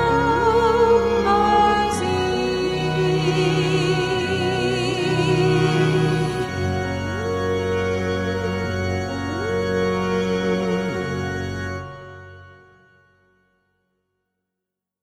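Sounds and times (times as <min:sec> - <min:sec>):
vocaloid synthesized singing voice: 0:00.0 - 0:11.8.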